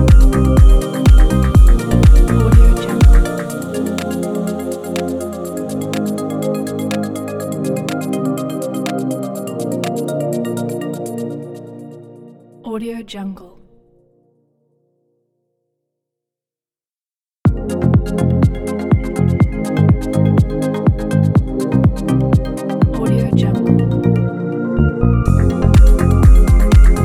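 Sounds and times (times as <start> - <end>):
chill deep house music: 0.0 - 12.0, 17.5 - 27.0.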